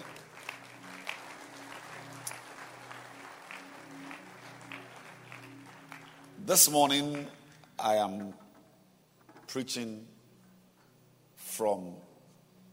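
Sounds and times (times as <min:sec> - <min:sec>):
audience clapping hands: 0:00.0 - 0:08.0
speech: 0:06.5 - 0:08.4, 0:09.5 - 0:10.1, 0:11.6 - 0:12.0.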